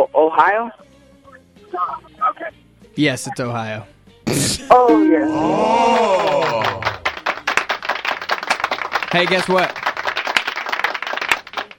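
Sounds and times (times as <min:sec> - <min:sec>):
speech: 0:00.1 - 0:00.9, 0:01.7 - 0:06.9, 0:09.2 - 0:09.8
applause: 0:05.9 - 0:11.7.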